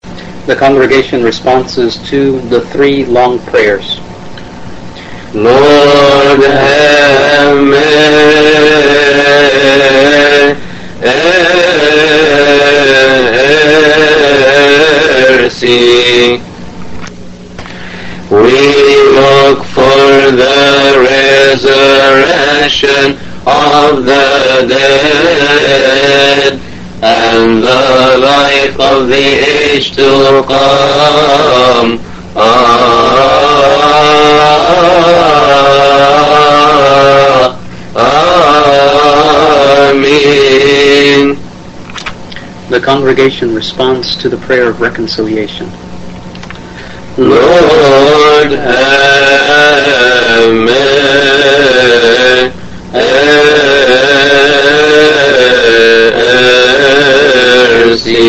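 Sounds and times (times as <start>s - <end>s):
English liturgical hymn singing: 0.0s - 16.6s, 17.6s - 58.2s.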